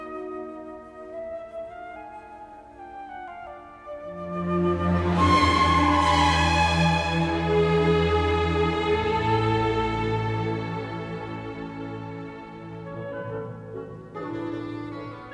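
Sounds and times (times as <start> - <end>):
mazurka: 4.0 - 15.3.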